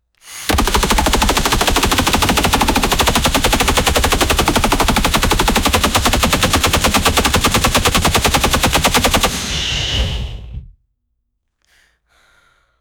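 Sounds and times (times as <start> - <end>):
superhero super speed run effect: 0.5 - 10.7.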